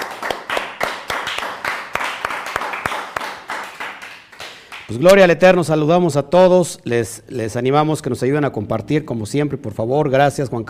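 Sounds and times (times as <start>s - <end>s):
audience applause: 0.0s - 4.9s
speech: 4.9s - 10.6s.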